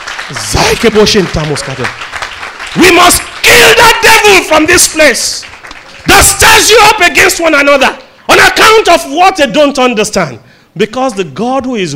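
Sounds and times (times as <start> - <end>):
audience clapping: 0.0 - 8.8
man speaking or chanting loudly: 0.3 - 2.0, 2.7 - 11.9
speech: 0.3 - 2.2, 2.8 - 11.9.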